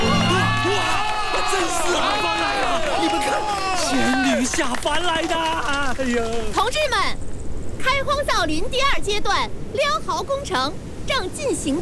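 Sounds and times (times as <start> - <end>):
crowd cheering and shouting: 0.0 - 4.5
continuous clapping: 0.0 - 7.1
speech: 4.5 - 11.7.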